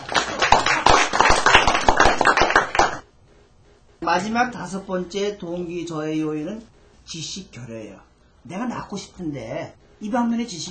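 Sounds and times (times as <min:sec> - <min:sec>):
audience applause: 0:00.0 - 0:03.0
speech: 0:04.2 - 0:10.6.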